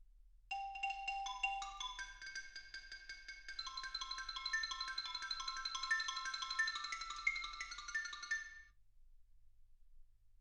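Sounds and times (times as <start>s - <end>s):
xylophone: 0.5s - 8.7s.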